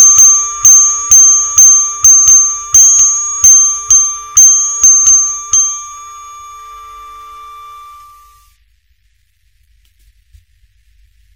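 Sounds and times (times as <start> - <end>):
ringtone: 0.0 - 8.5.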